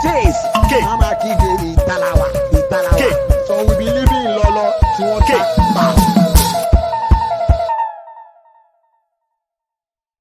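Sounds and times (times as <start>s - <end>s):
chase music beat: 0.0s - 7.7s.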